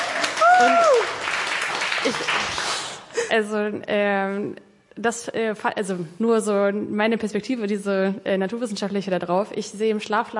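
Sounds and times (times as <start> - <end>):
audience applause: 0.0 - 3.1
speech: 0.6 - 1.2, 2.0 - 2.6, 3.3 - 10.3.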